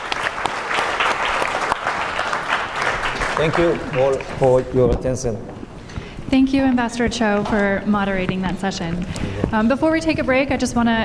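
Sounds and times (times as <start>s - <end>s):
audience applause: 0.0s - 4.8s
speech: 3.4s - 5.5s, 6.3s - 11.0s.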